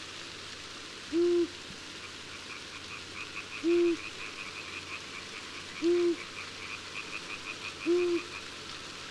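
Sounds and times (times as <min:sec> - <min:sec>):
long-eared owl in summer: 0:03.6 - 0:04.1, 0:05.8 - 0:06.3, 0:07.8 - 0:08.4.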